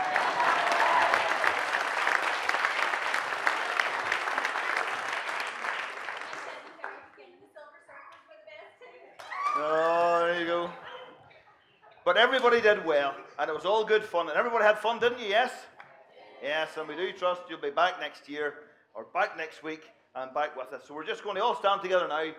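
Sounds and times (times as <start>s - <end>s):
audience applause: 0.0s - 7.0s, 9.2s - 10.7s
speech: 12.1s - 15.7s, 16.4s - 22.3s.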